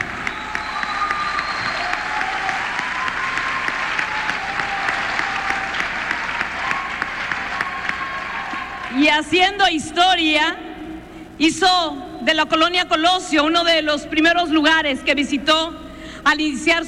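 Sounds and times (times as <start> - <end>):
faint whistles or cheers: 0.0 - 8.9
crowd applauding: 0.0 - 9.0
speech: 9.0 - 10.6, 11.4 - 16.8.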